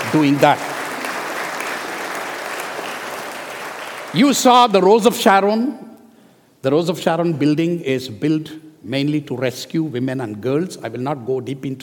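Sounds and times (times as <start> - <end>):
audience applauding: 0.0 - 4.8
speech: 0.1 - 0.7, 4.1 - 5.9, 6.6 - 11.8.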